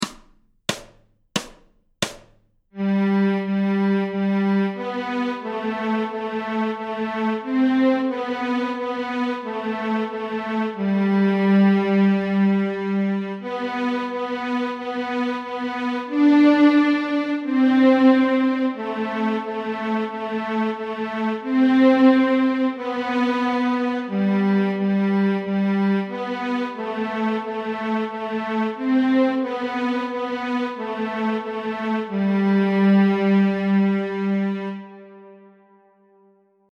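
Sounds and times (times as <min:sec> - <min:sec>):
violin melody in G: 0:02.8 - 0:35.5.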